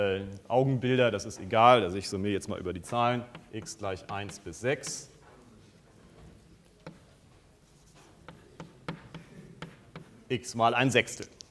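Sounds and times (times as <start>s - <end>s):
speech: 0.0s - 5.1s, 10.3s - 11.4s
low hiss: 0.0s - 11.4s
writing on a board during a maths lecture: 2.9s - 10.3s.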